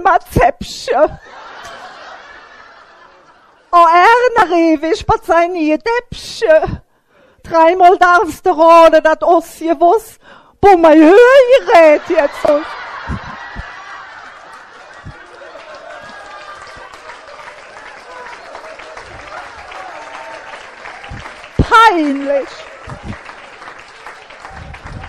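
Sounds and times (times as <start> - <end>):
speech: 0.0 - 1.8, 3.7 - 6.8, 7.4 - 13.3, 21.9 - 23.1
audience laughter: 1.2 - 3.7, 11.5 - 25.0
audience applause: 12.3 - 25.0.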